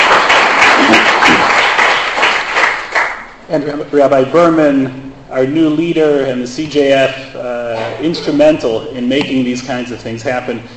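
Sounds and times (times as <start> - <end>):
crowd applauding: 0.0 - 3.3
speech: 3.5 - 10.7.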